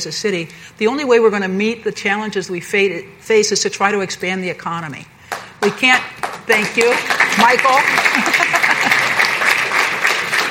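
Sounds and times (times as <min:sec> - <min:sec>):
speech: 0:00.0 - 0:08.7
audience applause at a talk on county and city economic development: 0:06.2 - 0:10.4.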